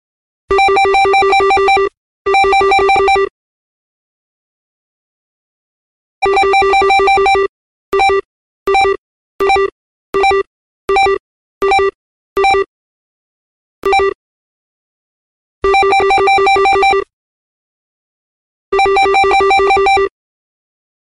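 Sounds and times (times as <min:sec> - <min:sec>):
phone ringing: 0:00.5 - 0:03.3, 0:06.2 - 0:12.7, 0:15.6 - 0:17.1, 0:18.8 - 0:20.1.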